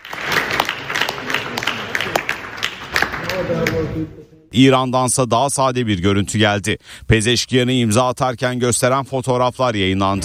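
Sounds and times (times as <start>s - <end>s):
applause after the signing of an agreement at a ceremony: 0.0s - 4.1s
speech: 3.4s - 10.2s.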